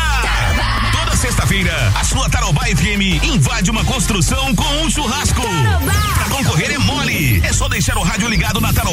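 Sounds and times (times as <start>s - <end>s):
construction workers shouting a cheer: 0.1s - 1.9s
speech: 1.6s - 8.9s.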